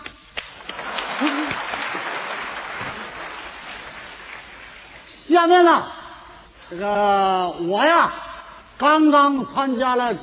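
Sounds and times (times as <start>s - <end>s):
audience applause: 0.4s - 5.1s
speech: 5.4s - 6.0s, 6.7s - 8.2s, 8.8s - 10.2s.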